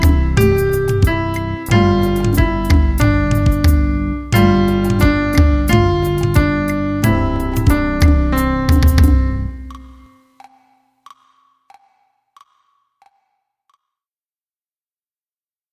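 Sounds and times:
piano method exercise: 0:00.0 - 0:10.5.

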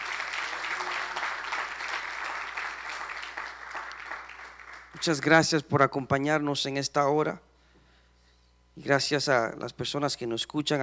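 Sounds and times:
applause: 0:00.0 - 0:05.3
speech: 0:05.0 - 0:07.5, 0:08.8 - 0:10.8.

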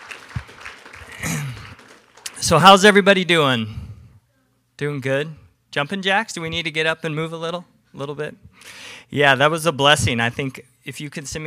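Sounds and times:
audience applause: 0:00.0 - 0:03.0
speech: 0:02.5 - 0:03.8, 0:04.8 - 0:11.4.

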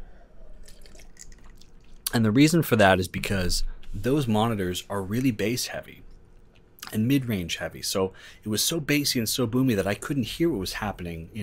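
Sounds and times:
person sipping vodka: 0:00.4 - 0:02.1
speech: 0:02.1 - 0:06.1, 0:06.9 - 0:11.4.

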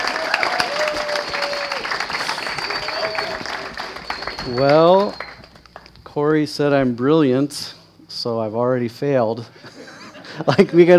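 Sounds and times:
church congregation applause welcoming a speaker: 0:00.0 - 0:05.9
speech: 0:04.5 - 0:05.2, 0:06.2 - 0:09.7, 0:10.4 - 0:10.9.

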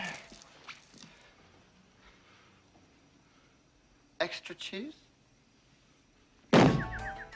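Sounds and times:
speech: 0:04.2 - 0:05.0
head slamming into a wall: 0:06.5 - 0:06.9
high chirps: 0:06.6 - 0:07.3.

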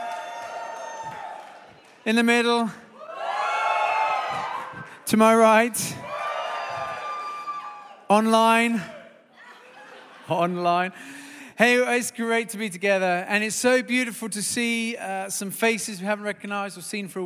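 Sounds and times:
audience whooping and cheering: 0:00.0 - 0:02.0, 0:03.0 - 0:08.1
speech: 0:02.0 - 0:02.8, 0:05.1 - 0:06.1, 0:08.1 - 0:09.0, 0:10.3 - 0:17.2
laughter: 0:09.3 - 0:10.9.

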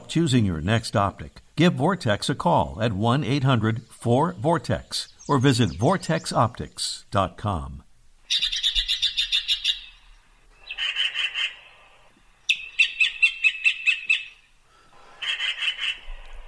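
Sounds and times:
speech: 0:00.1 - 0:08.4
Yellow-billed Magpie grating calls: 0:08.2 - 0:16.4.

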